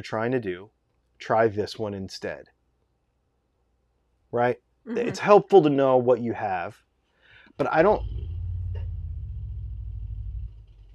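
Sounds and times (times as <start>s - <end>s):
speech: 0.0s - 2.6s, 4.3s - 6.8s, 7.6s - 8.2s
motorbike passing: 7.8s - 10.9s.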